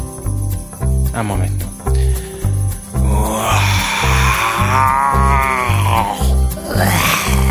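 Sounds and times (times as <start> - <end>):
thumping low beat: 0.0 - 7.4
speech: 1.2 - 1.7
voice imitating a lion's roar: 3.0 - 7.4.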